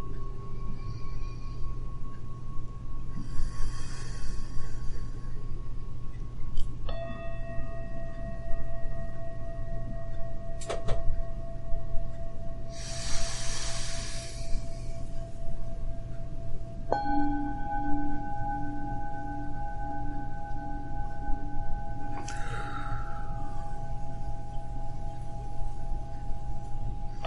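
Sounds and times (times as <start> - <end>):
steady low hum: 0.0 - 27.2
deep breaths in a breathing exercise: 3.2 - 5.5, 12.7 - 15.5, 22.2 - 24.5.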